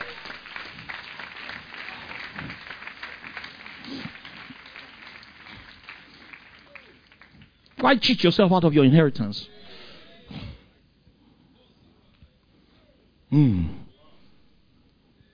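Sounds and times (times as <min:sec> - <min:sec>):
audience clapping: 0:00.0 - 0:08.3
speech: 0:07.8 - 0:09.6, 0:13.4 - 0:13.8.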